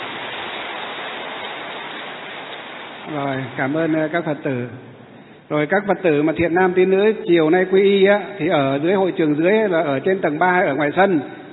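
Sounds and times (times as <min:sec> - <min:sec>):
crowd applause: 0:00.0 - 0:04.2
speech: 0:03.1 - 0:04.9, 0:05.5 - 0:11.4.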